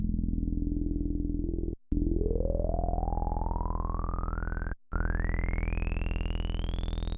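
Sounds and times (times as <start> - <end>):
resonant filtered saw synth bass: 0.2 - 7.0.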